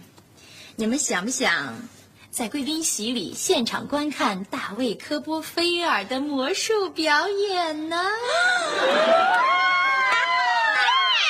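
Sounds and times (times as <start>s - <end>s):
speech: 0.8s - 9.6s
children cheering: 8.8s - 11.2s.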